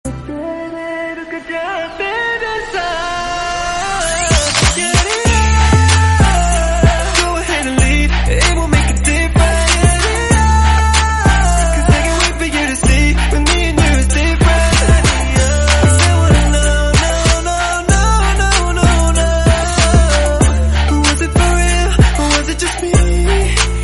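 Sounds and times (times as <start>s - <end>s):
English music mix: 0.0s - 23.8s.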